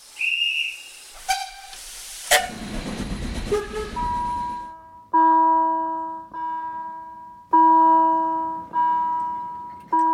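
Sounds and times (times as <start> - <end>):
hissing steam: 0.0 - 4.5
train whistle toots: 0.2 - 2.5, 3.5 - 4.2
railway warning bell ringing: 3.9 - 10.1.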